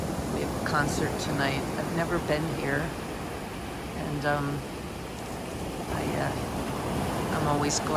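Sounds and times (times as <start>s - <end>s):
sea waves washing onto the beach at Pescara: 0.0s - 7.9s
wind: 0.0s - 7.9s
speech: 0.7s - 3.0s, 4.0s - 4.8s, 5.9s - 6.6s, 7.4s - 7.9s.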